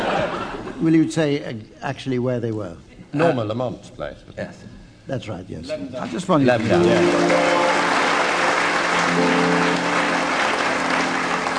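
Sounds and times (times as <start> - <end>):
speech: 0.8 - 7.6
studio audience applause: 6.5 - 11.5.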